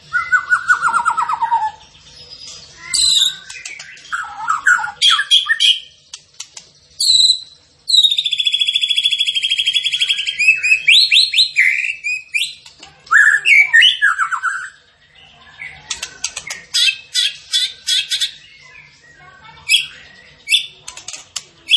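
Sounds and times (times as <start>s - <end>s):
zebra finch song: 0.0s - 21.7s.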